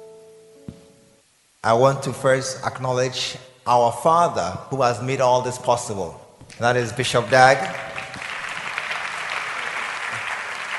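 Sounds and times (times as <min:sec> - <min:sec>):
speech: 0:01.6 - 0:07.9
crowd clapping: 0:06.5 - 0:10.7.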